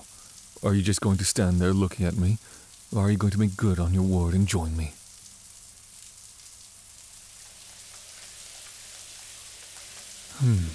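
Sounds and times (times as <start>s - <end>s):
running shower water: 0.0s - 10.7s
speech: 0.6s - 5.0s, 10.4s - 10.7s
person sighing: 10.3s - 10.7s.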